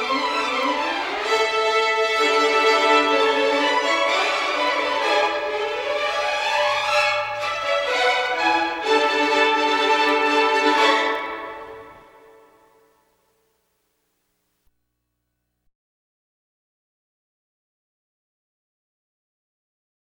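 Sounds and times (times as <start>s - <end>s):
country violins: 0.0s - 13.0s.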